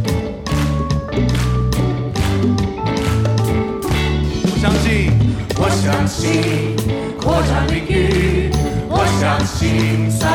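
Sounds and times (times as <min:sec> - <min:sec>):
audience clapping hands together: 0:00.0 - 0:05.1, 0:05.7 - 0:06.9
speech: 0:05.9 - 0:10.3.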